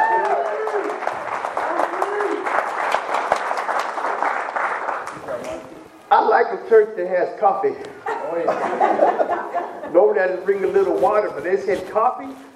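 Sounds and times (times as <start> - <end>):
audience applause: 0.0 - 5.8
speech: 6.7 - 12.5
laughter: 8.0 - 10.1.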